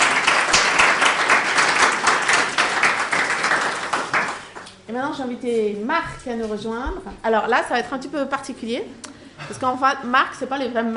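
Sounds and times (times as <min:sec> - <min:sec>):
audience applause: 0:00.0 - 0:04.7
speech: 0:04.9 - 0:10.9.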